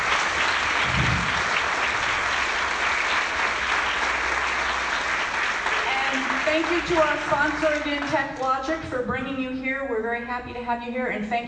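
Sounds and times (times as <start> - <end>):
audience applause: 0.0 - 8.5
speech: 6.6 - 11.4.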